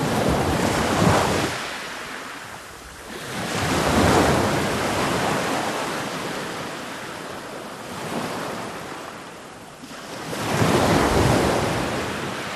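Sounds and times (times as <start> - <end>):
waves rolling on black sand in a cove: 0.0 - 12.5.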